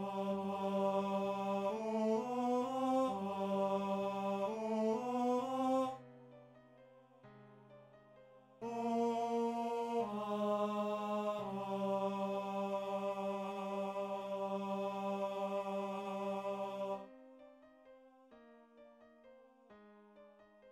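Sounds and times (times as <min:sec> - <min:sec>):
TTBB male choir singing: 0:00.0 - 0:06.0, 0:08.6 - 0:17.0.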